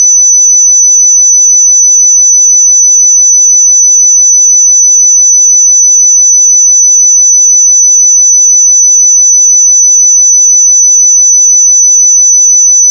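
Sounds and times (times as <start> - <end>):
pure sine tone at 5998 Hz: 0.0 - 12.8.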